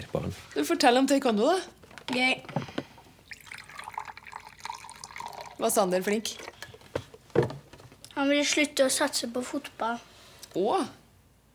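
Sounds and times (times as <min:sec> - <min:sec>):
speech: 0:00.0 - 0:02.7, 0:05.6 - 0:06.5, 0:08.2 - 0:11.0
milk poured into a glass: 0:03.2 - 0:06.6.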